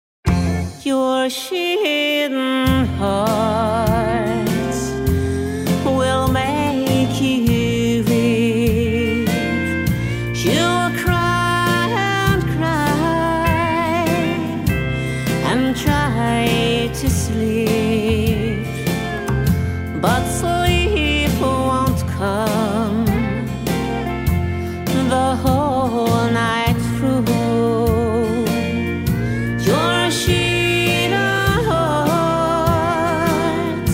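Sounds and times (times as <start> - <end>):
country parlor music: 0.3 - 33.9.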